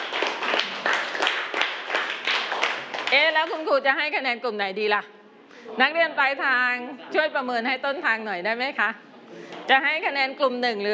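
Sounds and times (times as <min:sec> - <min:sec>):
students clapping: 0:00.0 - 0:03.6
speech: 0:03.1 - 0:10.9.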